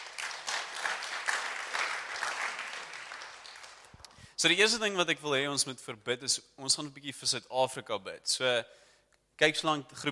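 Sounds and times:
audience applause: 0.0s - 3.9s
speech: 4.4s - 10.1s.

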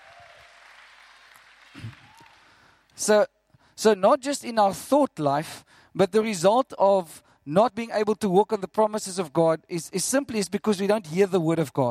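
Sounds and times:
audience applause: 0.0s - 2.8s
shout or cheer: 1.8s - 2.6s
speech: 3.0s - 11.8s.

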